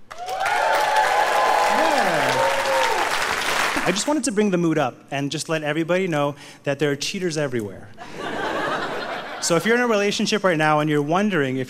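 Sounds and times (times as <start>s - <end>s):
crowd whooping and cheering: 0.0s - 4.0s
audience applause: 0.0s - 4.1s
speech: 3.9s - 8.2s, 9.4s - 11.6s
laughter: 8.0s - 9.6s.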